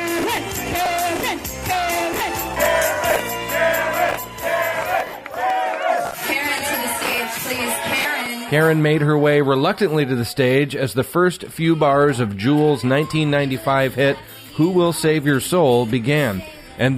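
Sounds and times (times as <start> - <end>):
crowd shouting and chanting for a performer: 0.0 - 15.4
cheers and whoops: 1.9 - 8.3
speech: 8.5 - 16.9.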